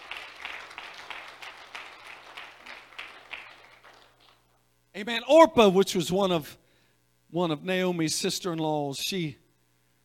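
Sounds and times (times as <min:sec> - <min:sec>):
audience clapping hands: 0:00.0 - 0:04.6
speech: 0:05.0 - 0:06.6, 0:07.3 - 0:09.4.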